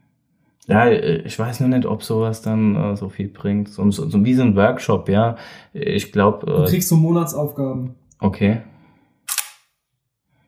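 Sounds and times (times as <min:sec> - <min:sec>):
speech: 0:00.7 - 0:08.7
camera shutter click: 0:09.3 - 0:09.7.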